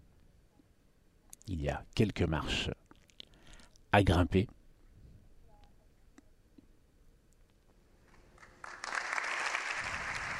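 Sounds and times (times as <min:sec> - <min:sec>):
speech: 0:01.5 - 0:02.8, 0:03.9 - 0:04.6
applause in parliament chamber: 0:08.1 - 0:10.3.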